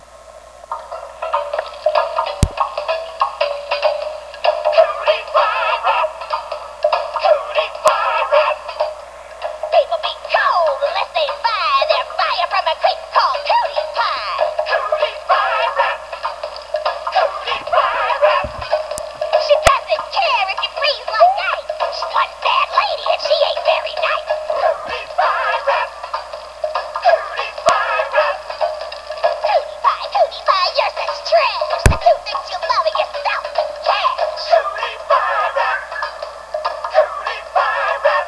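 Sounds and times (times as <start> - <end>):
rap music: 0.9 - 38.2.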